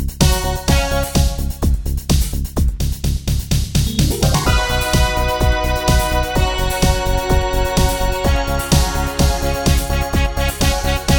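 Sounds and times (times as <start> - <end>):
music medley: 0.2 - 1.8, 3.2 - 11.1.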